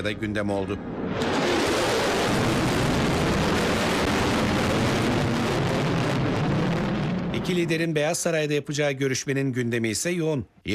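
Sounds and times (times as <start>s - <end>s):
speech: 0.0s - 1.4s, 7.4s - 10.7s
B-1 bomber flying over an airport during a welcome ceremony: 0.7s - 7.4s.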